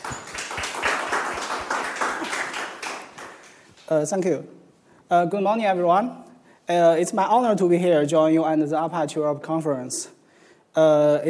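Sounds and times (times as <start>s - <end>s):
audience applause: 0.0s - 3.7s
speech: 3.9s - 10.2s, 10.8s - 11.2s.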